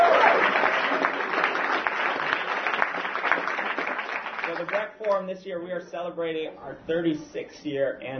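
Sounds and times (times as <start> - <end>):
audience clapping: 0.0 - 5.2
speech: 4.6 - 8.1.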